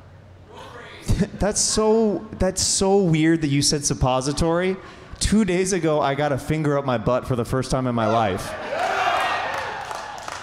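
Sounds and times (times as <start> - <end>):
speech: 1.2 - 8.8
audience clapping and cheering: 8.8 - 10.4.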